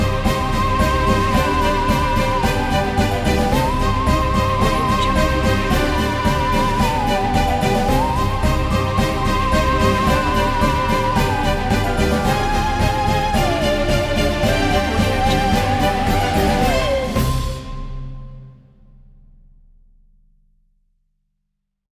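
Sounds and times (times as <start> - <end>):
halloween creatures marching: 0.0 - 17.7.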